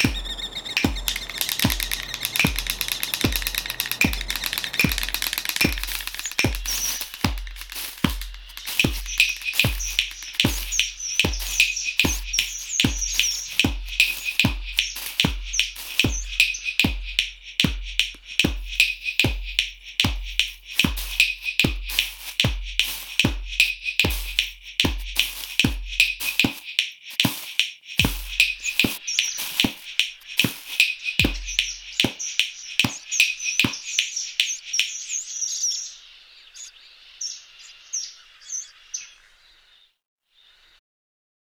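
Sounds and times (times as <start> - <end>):
shallow bird soundscape: 0.0 - 40.8.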